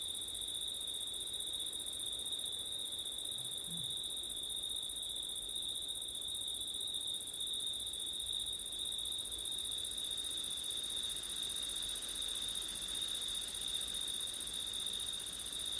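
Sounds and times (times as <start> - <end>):
crickets chirping on a September night: 0.0 - 15.7
wind on a September night: 0.0 - 15.7.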